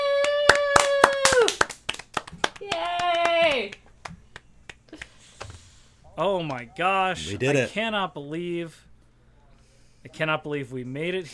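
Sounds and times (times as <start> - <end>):
scattered hand claps celebrating a 50th episode: 0.1 - 5.6
speech: 6.2 - 8.9, 10.0 - 11.3.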